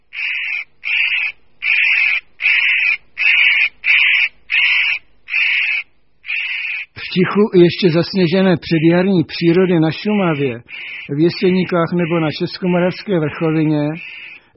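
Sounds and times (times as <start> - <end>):
spotted nutcracker grating rasping calls: 0.1 - 7.1, 10.3 - 12.9, 13.9 - 14.5
speech: 7.2 - 14.1.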